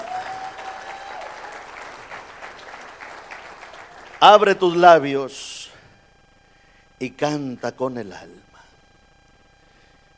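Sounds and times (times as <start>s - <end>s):
audience applause: 0.0s - 4.3s
speech: 4.2s - 5.5s, 7.0s - 8.5s.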